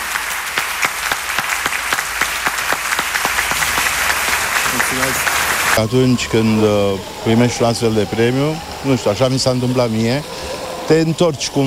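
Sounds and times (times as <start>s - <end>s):
audience applause for actor Marius Bodochi: 0.0s - 5.9s
speech: 5.8s - 11.6s.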